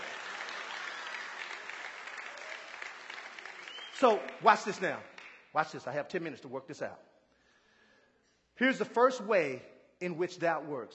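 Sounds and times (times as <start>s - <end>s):
audience applause: 0.0s - 5.4s
speech: 4.0s - 7.1s, 8.6s - 10.9s.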